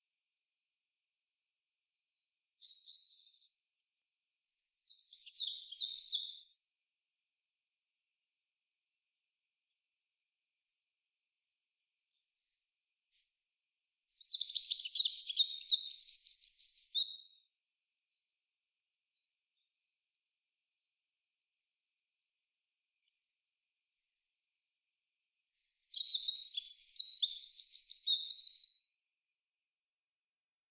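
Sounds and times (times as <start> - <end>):
Eurasian wren song: 2.6 - 6.7, 12.2 - 18.3, 25.5 - 29.0.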